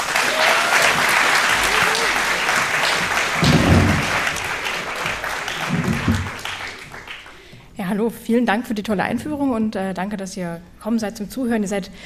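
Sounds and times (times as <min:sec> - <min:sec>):
warm applause from audience: 0:00.0 - 0:07.6
speech: 0:08.0 - 0:12.0.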